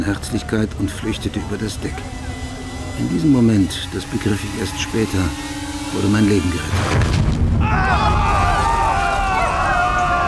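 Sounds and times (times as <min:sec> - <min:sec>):
speech: 0:00.0 - 0:02.3, 0:03.0 - 0:08.3
steam blast from a ship's forward funnel through a jammed steam valve: 0:00.0 - 0:10.2.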